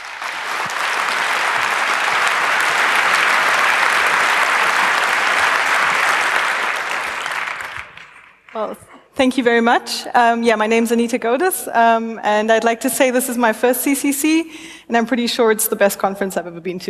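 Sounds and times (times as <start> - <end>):
audience welcome applause: 0.0 - 8.8
speech: 8.6 - 16.8.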